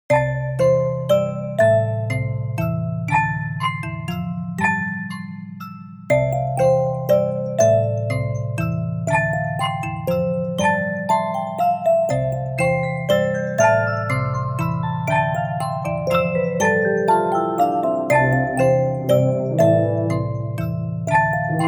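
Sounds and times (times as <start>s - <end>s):
Christmas music box melody: 0.1s - 21.6s.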